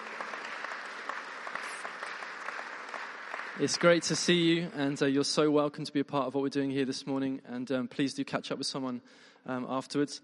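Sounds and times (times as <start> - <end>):
crowd applauding: 0.0 - 4.8
speech: 3.6 - 10.2.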